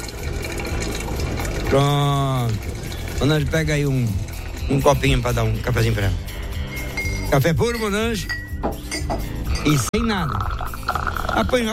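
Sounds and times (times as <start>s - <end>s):
water running into a coffee pot being filled: 0.0s - 6.2s, 9.5s - 11.7s
speech: 1.7s - 6.4s, 7.3s - 10.6s, 11.4s - 11.7s.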